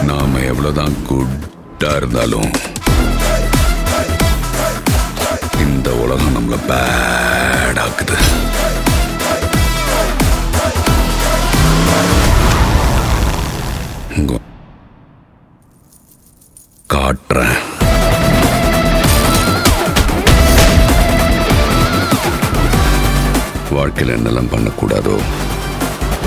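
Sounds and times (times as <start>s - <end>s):
background music: 0.0s - 14.9s, 17.1s - 26.2s.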